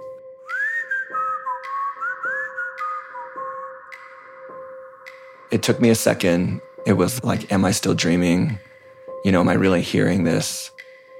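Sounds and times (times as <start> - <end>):
person whistling old-fashioned melody: 0.0 - 5.5
speech: 5.6 - 10.8.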